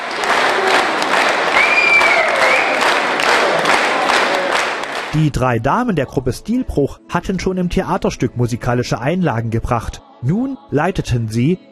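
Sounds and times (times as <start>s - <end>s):
theatre audience applause: 0.0s - 5.2s
speech: 5.2s - 11.7s.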